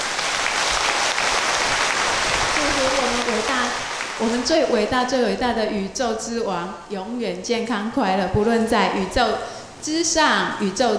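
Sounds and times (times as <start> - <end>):
audience applause at a gathering: 0.0 - 4.7
speech: 3.4 - 10.9.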